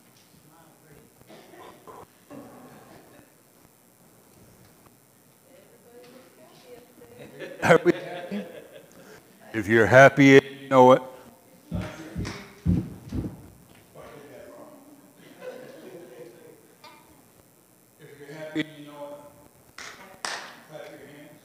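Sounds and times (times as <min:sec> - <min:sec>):
laughter: 0:01.6 - 0:03.4, 0:07.1 - 0:09.2, 0:15.2 - 0:16.7
speech: 0:07.7 - 0:07.9, 0:09.6 - 0:11.1
hands clapping along to song: 0:11.8 - 0:12.6, 0:19.8 - 0:21.0.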